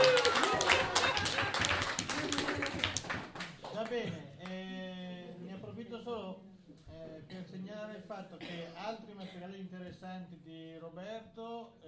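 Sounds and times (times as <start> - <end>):
crowd applauding: 0.0 - 4.0
speech: 6.8 - 11.8.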